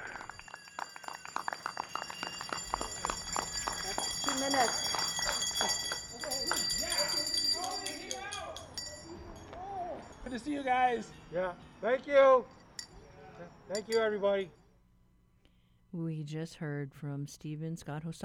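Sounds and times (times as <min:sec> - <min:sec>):
steady rhythmic clapping: 0:00.0 - 0:08.9
ringing bells: 0:00.0 - 0:11.5, 0:13.6 - 0:14.3
speech: 0:04.4 - 0:05.0, 0:10.3 - 0:12.6, 0:13.7 - 0:14.6, 0:16.0 - 0:18.2.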